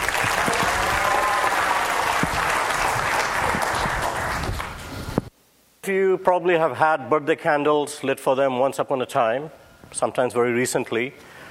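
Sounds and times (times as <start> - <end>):
audience applause: 0.0 - 4.9
speech: 6.2 - 11.4.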